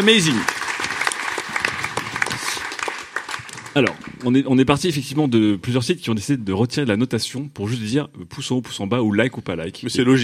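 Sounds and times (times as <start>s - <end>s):
speech: 0.0s - 0.6s, 3.7s - 10.2s
applause: 0.0s - 4.5s.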